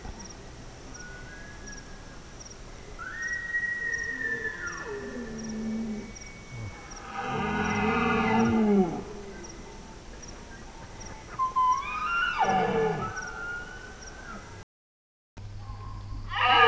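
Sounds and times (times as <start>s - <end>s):
male Bactrian deer calling and roaring: 3.0s - 9.4s, 11.3s - 14.6s, 16.3s - 16.6s.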